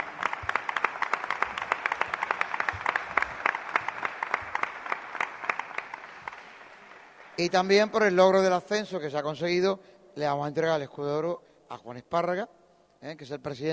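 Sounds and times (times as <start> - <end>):
audience applause: 0.0 - 8.2
speech: 7.4 - 13.7.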